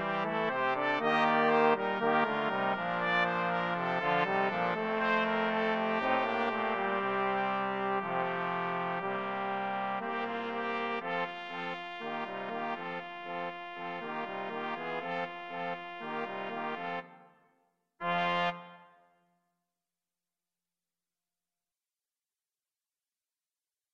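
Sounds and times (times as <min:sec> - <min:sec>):
brass quartet playing: 0:00.0 - 0:17.2, 0:18.0 - 0:18.9.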